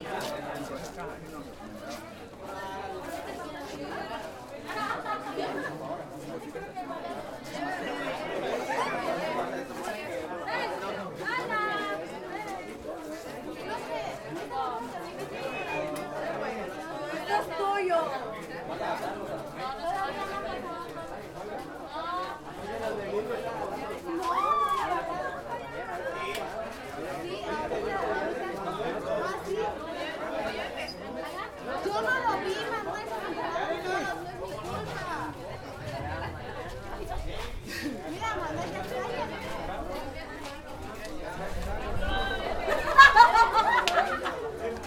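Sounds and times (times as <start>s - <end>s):
school recess ambience: 0.0s - 44.8s
laughter: 4.3s - 6.8s, 31.9s - 39.8s, 42.0s - 44.8s.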